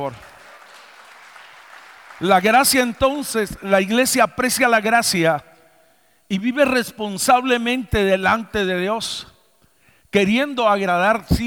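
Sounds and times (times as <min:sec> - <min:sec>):
speech: 0:00.0 - 0:00.3, 0:02.2 - 0:05.5, 0:06.3 - 0:09.3, 0:10.1 - 0:11.4
audience applause: 0:00.0 - 0:03.3.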